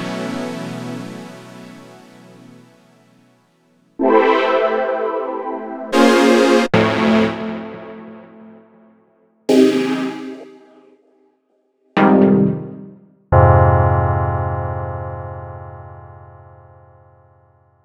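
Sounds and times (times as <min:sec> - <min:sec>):
chords: 0:04.0 - 0:08.8, 0:09.5 - 0:10.9, 0:12.0 - 0:15.5.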